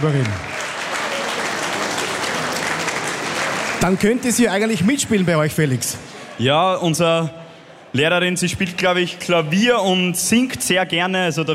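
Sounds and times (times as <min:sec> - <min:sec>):
speech: 0:00.0 - 0:00.5, 0:03.8 - 0:11.5
applause for a female teacher on a radio show: 0:00.0 - 0:05.2.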